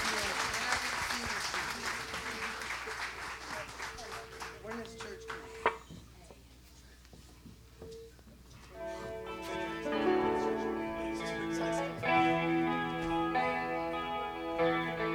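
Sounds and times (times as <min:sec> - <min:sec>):
audience round of applause: 0:00.0 - 0:05.8
voices: 0:00.0 - 0:07.2, 0:08.8 - 0:15.0.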